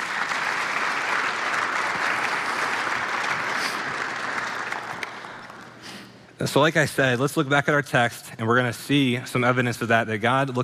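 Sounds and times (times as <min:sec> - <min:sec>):
round of applause: 0:00.0 - 0:05.8
speech: 0:06.4 - 0:10.6.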